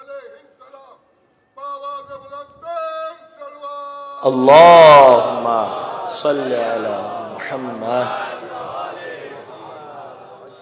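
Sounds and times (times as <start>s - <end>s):
speech: 4.2s - 8.2s
crowd of pilgrims chanting a slogan at a shrine: 4.3s - 10.5s.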